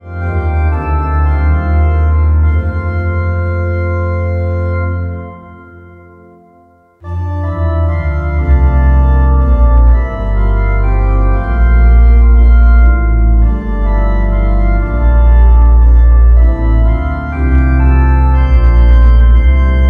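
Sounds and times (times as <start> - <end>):
organ: 0.0 - 19.8.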